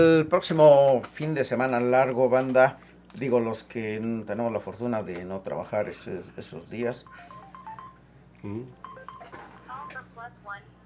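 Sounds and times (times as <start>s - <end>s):
speech: 0.0s - 7.3s, 8.4s - 8.8s
low steady hum: 0.0s - 10.8s
mobile phone beeping with incoming calls in a radio broadcast booth: 7.0s - 8.0s, 8.8s - 10.0s.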